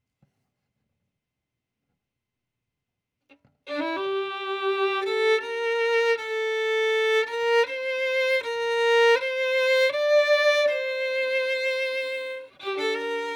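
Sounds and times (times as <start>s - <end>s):
violin: 3.7s - 13.3s.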